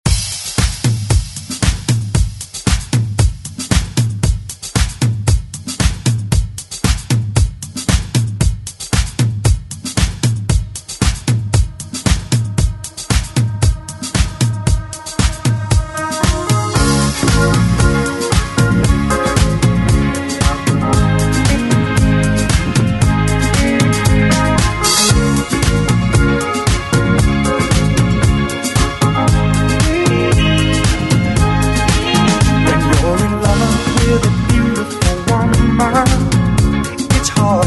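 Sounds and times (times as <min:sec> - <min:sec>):
1970s drum beat: 0:00.0 - 0:37.6.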